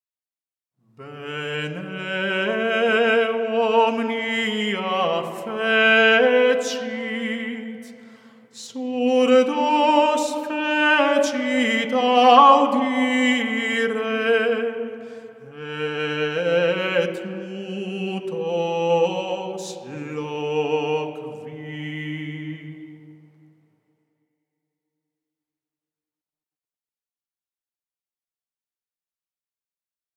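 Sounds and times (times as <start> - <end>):
antiphon chant: 1.0 - 23.3.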